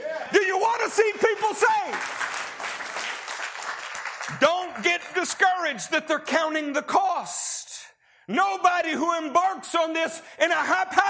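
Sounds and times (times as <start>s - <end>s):
audience hand clapping: 0.9s - 5.8s
speech: 4.3s - 7.6s, 8.3s - 11.0s.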